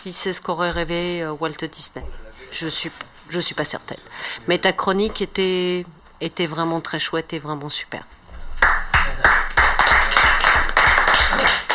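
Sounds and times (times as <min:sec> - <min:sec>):
speech: 0:00.0 - 0:08.2
applause: 0:08.6 - 0:11.7.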